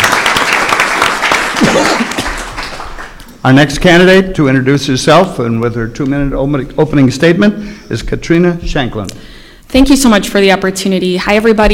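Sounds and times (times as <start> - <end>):
audience applause for a political candidate at a Southwest Wisconsin candidate forum: 0.0 - 3.3
speech: 3.4 - 11.7.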